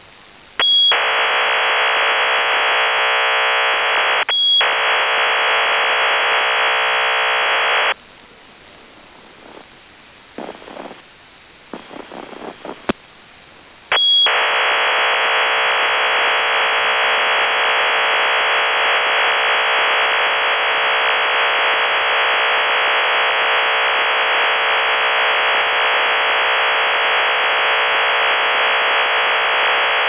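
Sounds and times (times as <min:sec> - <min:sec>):
OFDM signal: 0:00.6 - 0:08.0, 0:13.9 - 0:30.0.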